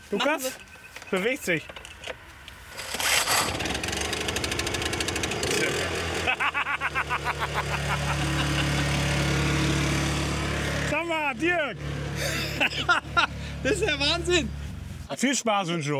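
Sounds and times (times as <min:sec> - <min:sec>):
speech: 0:00.1 - 0:01.8, 0:06.6 - 0:08.8, 0:10.9 - 0:15.9
small portable power generator engine cranking and starting: 0:02.7 - 0:11.2
laughter: 0:06.2 - 0:09.0, 0:12.2 - 0:13.6.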